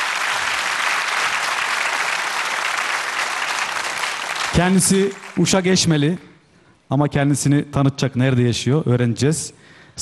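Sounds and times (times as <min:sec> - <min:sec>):
audience applause: 0:00.0 - 0:05.6
speech: 0:04.6 - 0:06.3, 0:06.9 - 0:10.0.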